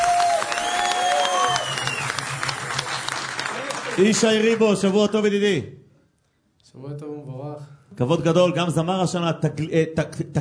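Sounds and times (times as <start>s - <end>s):
crowd clapping: 0.0s - 5.4s
speech: 4.0s - 5.8s, 6.7s - 10.3s.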